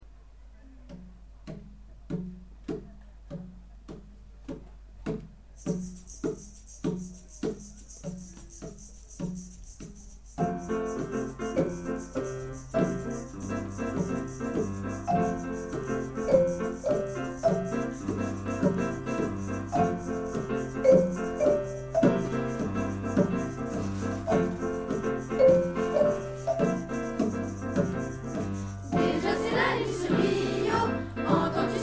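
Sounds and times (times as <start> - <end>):
samba song: 1.5 - 31.8.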